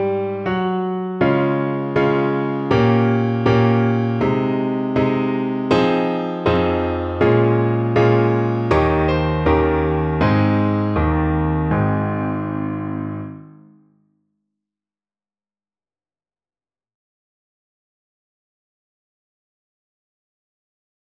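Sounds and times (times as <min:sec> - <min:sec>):
piano: 0:00.0 - 0:13.9.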